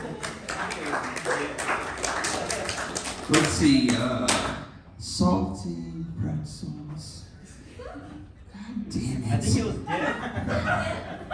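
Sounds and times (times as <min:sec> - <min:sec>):
laughter: 0:00.0 - 0:01.5, 0:07.5 - 0:08.5, 0:09.5 - 0:11.3
audience clapping: 0:00.0 - 0:04.6
speech: 0:03.3 - 0:04.4, 0:05.2 - 0:07.2, 0:07.8 - 0:11.3.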